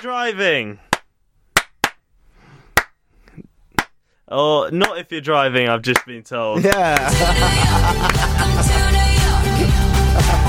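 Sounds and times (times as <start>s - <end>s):
speech: 0.0s - 0.9s, 4.3s - 8.9s
hands clapping: 0.9s - 2.0s, 2.8s - 3.0s, 3.8s - 4.0s, 4.8s - 5.0s, 5.9s - 8.5s
laughter: 6.5s - 10.4s.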